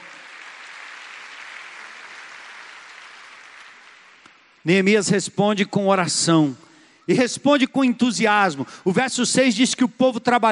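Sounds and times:
applause: 0:00.0 - 0:04.7
speech: 0:04.6 - 0:10.4.

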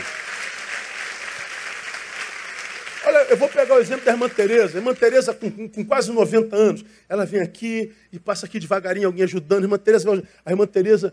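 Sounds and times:
audience applauding: 0:00.0 - 0:05.4
speech: 0:03.2 - 0:11.1.

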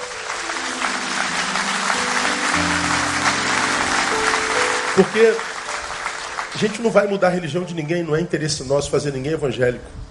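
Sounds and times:
crowd applauding: 0:00.0 - 0:07.7
humming musical tones: 0:00.0 - 0:08.4
speech: 0:05.0 - 0:05.5, 0:06.5 - 0:10.0.

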